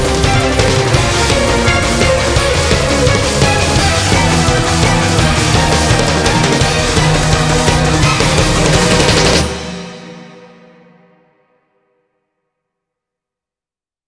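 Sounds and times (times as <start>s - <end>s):
battle background music: 0.0s - 10.9s.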